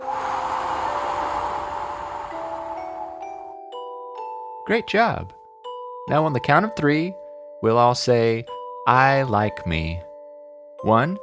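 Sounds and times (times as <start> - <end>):
long deep breath blown out slowly as a calming exercise: 0.0 - 3.4
speech: 4.7 - 5.4, 6.1 - 10.1, 10.8 - 11.2.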